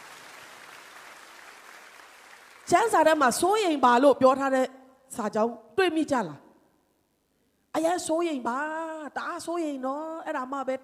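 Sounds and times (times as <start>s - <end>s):
church congregation clapping in praise during a service: 0.0s - 3.0s
speech: 2.7s - 6.4s, 7.8s - 10.8s.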